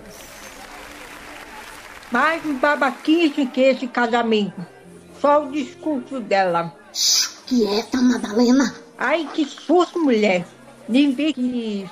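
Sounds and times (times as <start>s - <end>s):
round of applause: 0.0s - 3.5s
speech: 2.1s - 11.8s.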